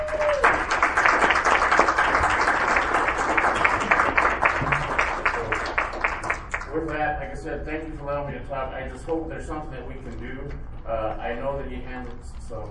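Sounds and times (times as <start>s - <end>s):
round of applause: 0.0s - 7.0s
speech: 7.4s - 12.6s.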